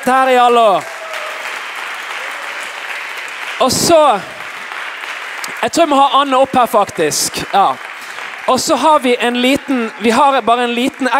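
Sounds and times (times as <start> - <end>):
speech: 0.0 - 0.9, 3.6 - 4.4, 5.6 - 7.9, 8.5 - 11.1
audience applauding: 0.0 - 11.1.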